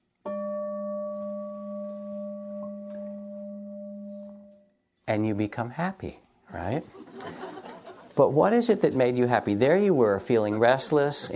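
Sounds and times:
meditation bell ringing: 0:00.3 - 0:04.8
speech: 0:05.1 - 0:07.5, 0:08.2 - 0:11.3
laughter: 0:06.9 - 0:08.2.

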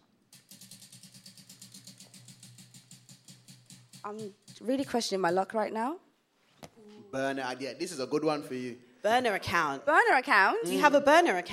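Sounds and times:
prize wheel spinning with clicking ticks: 0:00.3 - 0:05.4
speech: 0:04.0 - 0:06.1, 0:06.8 - 0:11.5.

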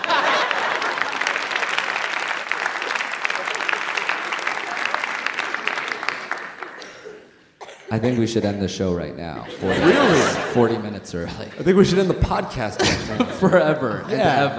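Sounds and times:
audience applause: 0:00.0 - 0:07.3
laughter: 0:00.0 - 0:08.6, 0:09.3 - 0:14.5
speech: 0:07.9 - 0:14.5.

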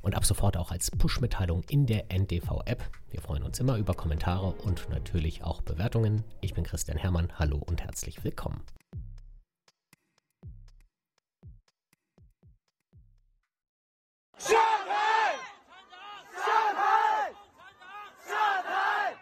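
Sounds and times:
speech: 0:00.0 - 0:08.8
angry protest crowd chanting on the streets of Shanghai: 0:14.4 - 0:19.2.

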